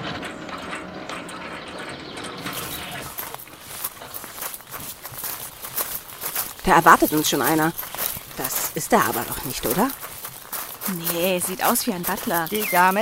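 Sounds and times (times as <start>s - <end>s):
gate to a grand house opening with mechanical grinding: 0.0s - 6.4s
speech: 6.7s - 10.1s, 10.9s - 12.9s.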